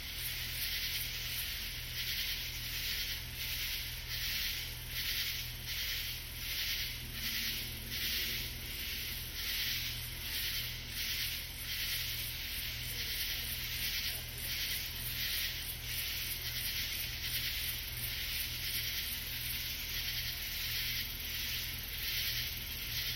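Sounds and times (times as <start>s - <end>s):
katydid raspy call: 0.3s - 23.1s.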